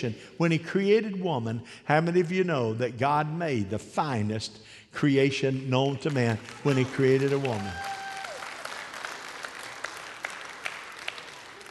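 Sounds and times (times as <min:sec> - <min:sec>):
speech: 0:00.0 - 0:08.0
crowd applauding: 0:06.0 - 0:11.6.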